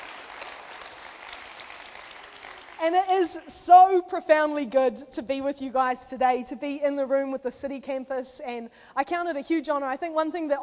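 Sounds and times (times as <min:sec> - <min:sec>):
audience clapping: 0:00.0 - 0:03.4
speech: 0:02.8 - 0:10.6.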